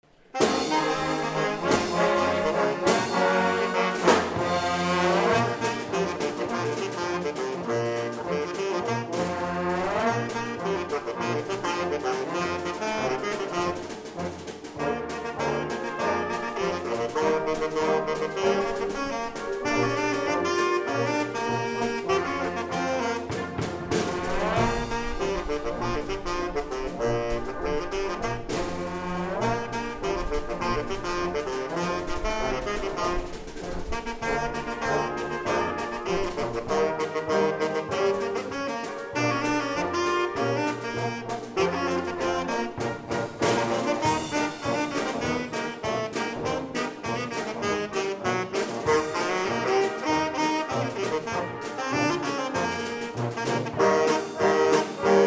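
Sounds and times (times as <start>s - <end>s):
brass: 0.0s - 55.2s
saxophone: 0.3s - 55.2s.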